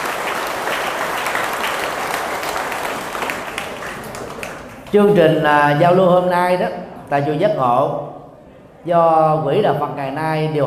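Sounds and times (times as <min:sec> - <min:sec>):
round of applause: 0:00.0 - 0:04.9
speech: 0:04.9 - 0:08.2, 0:08.8 - 0:10.6.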